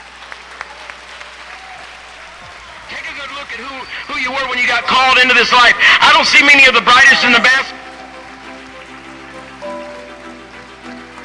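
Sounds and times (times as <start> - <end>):
congregation applauding a preacher to the stage: 0.0 - 11.2
speech: 3.2 - 7.7.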